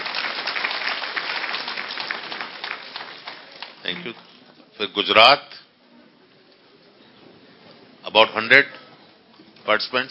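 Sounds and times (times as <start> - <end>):
audience applause: 0.0 - 4.3
speech: 3.8 - 5.6, 8.1 - 8.8, 9.7 - 10.0.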